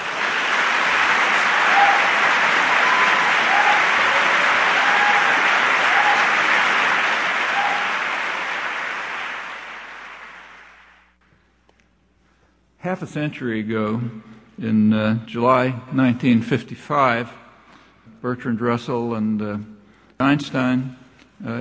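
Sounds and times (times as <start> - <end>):
large audience clapping to welcome Noam Chomsky at a talk in Ireland: 0.0 - 11.2
speech: 12.9 - 17.4, 18.2 - 21.5.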